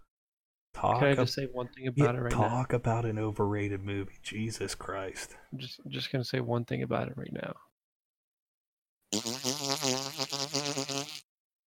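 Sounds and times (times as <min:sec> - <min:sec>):
speech: 0:00.8 - 0:07.7, 0:09.1 - 0:11.3
wet fart: 0:09.1 - 0:11.3.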